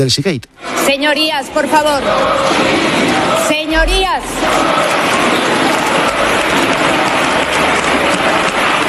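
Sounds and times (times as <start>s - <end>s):
speech: 0.0s - 5.4s
sustained applause ovation in parliament: 2.1s - 8.8s.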